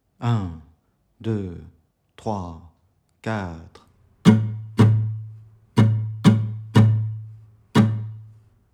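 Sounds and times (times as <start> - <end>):
musical exercise: 4.1 - 8.5.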